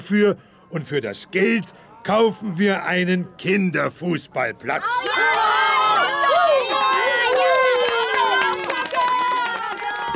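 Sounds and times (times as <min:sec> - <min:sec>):
speech: 0:00.1 - 0:05.6
children shouting: 0:04.8 - 0:10.1
crowd cheering and clapping: 0:04.8 - 0:10.1.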